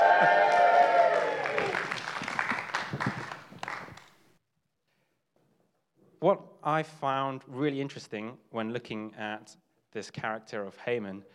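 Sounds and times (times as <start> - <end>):
crowd cheering: 0.0 - 4.0
clapping: 0.0 - 4.2
speech: 6.3 - 11.3.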